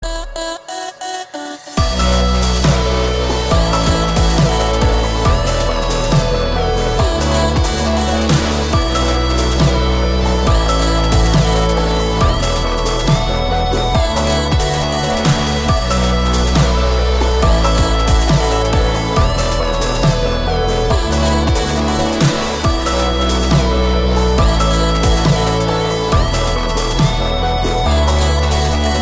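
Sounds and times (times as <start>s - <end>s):
liquid chillstep music: 0.0s - 29.0s.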